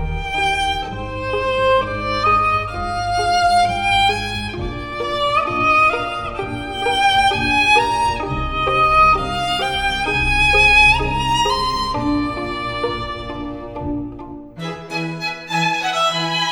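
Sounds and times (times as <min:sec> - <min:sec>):
relaxing classical music: 0:00.0 - 0:16.5.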